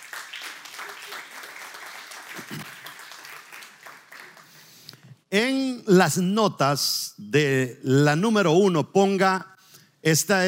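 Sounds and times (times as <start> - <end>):
audience applause: 0.0 - 4.8
speech: 5.3 - 10.4.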